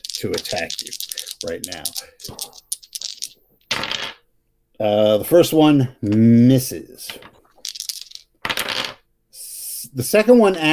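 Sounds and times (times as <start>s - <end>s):
dice rolling across a hard surface: 0.0s - 4.2s, 7.1s - 9.0s
speech: 0.2s - 2.7s, 4.8s - 7.4s, 9.9s - 10.7s.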